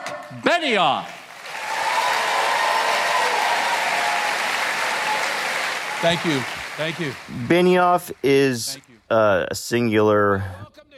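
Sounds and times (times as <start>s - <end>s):
speech: 0.3s - 1.2s, 6.0s - 10.8s
audience applause welcoming Salesforce chairman Marc Benioff onstage: 0.4s - 8.2s.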